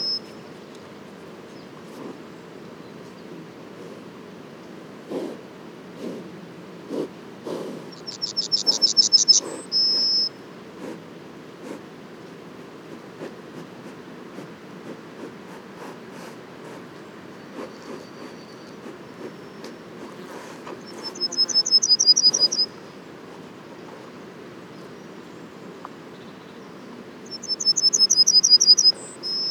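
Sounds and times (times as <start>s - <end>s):
yellowhammer song: 0.0s - 0.8s, 7.9s - 10.4s, 17.3s - 19.9s, 20.8s - 23.0s, 23.6s - 29.5s
faint background hiss: 0.0s - 29.5s.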